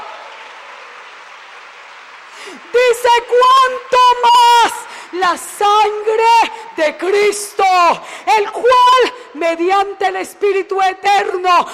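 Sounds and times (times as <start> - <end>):
congregation applauding during a church service: 0.0 - 8.2
speech: 2.5 - 4.3, 5.1 - 11.7.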